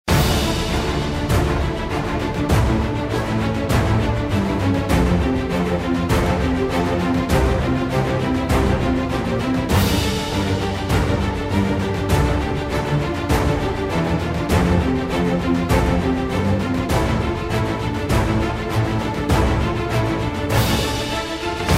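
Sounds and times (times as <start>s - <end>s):
background music: 0.1s - 21.7s.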